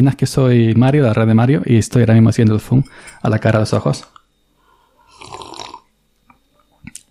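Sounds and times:
speech: 0.0s - 4.2s
person sipping black coffee: 5.0s - 5.9s.

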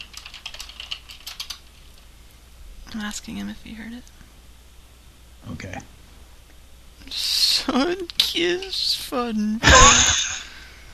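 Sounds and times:
message typed on a computer keyboard: 0.0s - 2.0s
speech: 2.9s - 4.2s, 5.4s - 6.0s, 7.0s - 10.4s.

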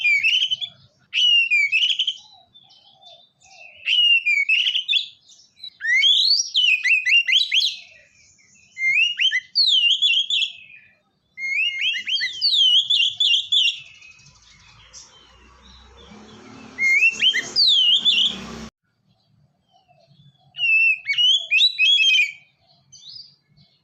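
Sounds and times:
Oriental magpie-robin song: 0.0s - 23.8s.

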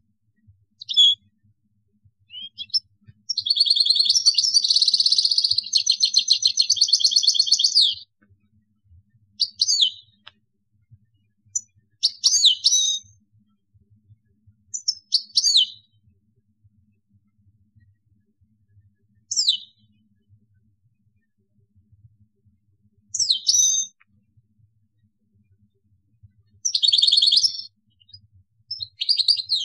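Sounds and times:
European goldfinch twittering: 0.8s - 1.2s, 2.3s - 8.0s, 9.4s - 10.2s, 12.0s - 13.1s, 23.2s - 23.9s, 26.6s - 27.7s, 28.7s - 29.6s.

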